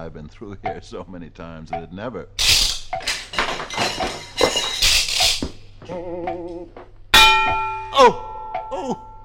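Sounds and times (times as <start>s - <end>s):
speech: 0.0s - 3.0s, 3.8s - 4.3s, 5.9s - 9.2s
clock pendulum clanging against a head: 2.4s - 5.8s, 7.1s - 8.7s.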